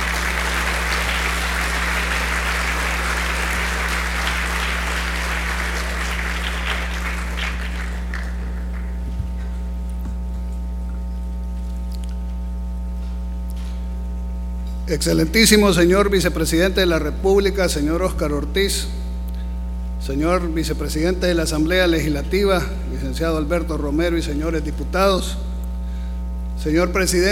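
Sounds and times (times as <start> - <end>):
audience applause welcoming a speaker: 0.0 - 9.1
low electrical hum: 0.0 - 27.3
speech: 14.9 - 19.0, 20.0 - 25.5, 26.6 - 27.3.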